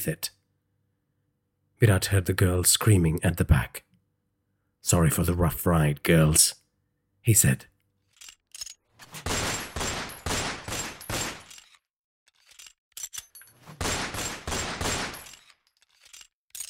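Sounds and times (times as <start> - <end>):
speech: 0.0 - 0.4, 1.8 - 3.9, 4.8 - 6.6, 7.2 - 7.7
guards firing pistols from within the guardhouse: 9.2 - 11.5, 13.8 - 15.4.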